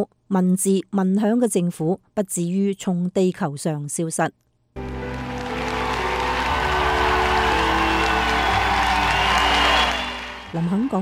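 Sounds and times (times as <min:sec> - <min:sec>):
speech: 0:00.0 - 0:04.4, 0:10.5 - 0:11.0
audience applauding warmly: 0:04.8 - 0:11.0.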